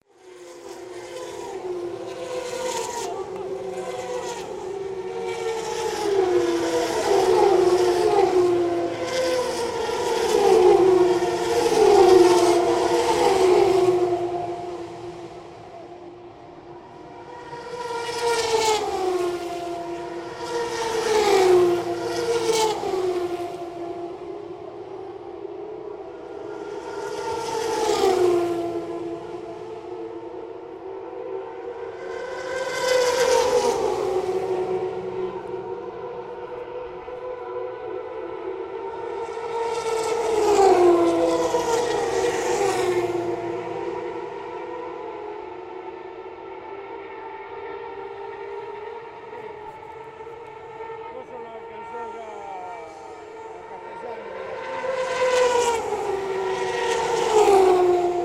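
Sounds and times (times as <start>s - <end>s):
racetrack sounds: 0.1s - 58.2s.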